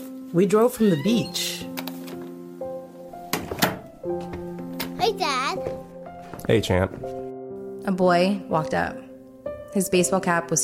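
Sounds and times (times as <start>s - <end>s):
speech: 0.3s - 1.7s, 6.5s - 7.2s, 7.9s - 9.1s, 9.7s - 10.6s
door opening: 0.8s - 2.4s, 3.2s - 5.9s
door latch clunks: 3.3s - 3.9s.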